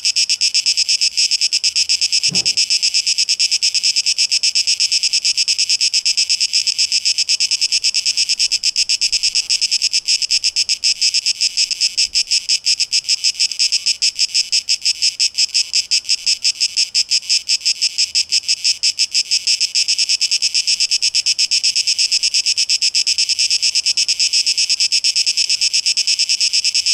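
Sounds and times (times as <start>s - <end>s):
cicada buzzing: 0.0s - 26.9s
short thud: 2.3s - 2.7s.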